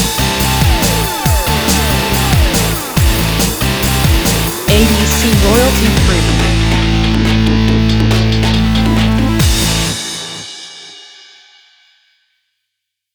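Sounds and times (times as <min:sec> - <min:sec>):
energy synth: 0:00.0 - 0:09.7.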